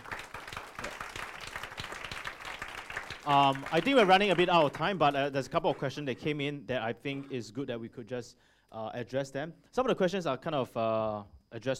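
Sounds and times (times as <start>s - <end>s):
audience applause: 0.0s - 5.9s
speech: 3.2s - 11.7s.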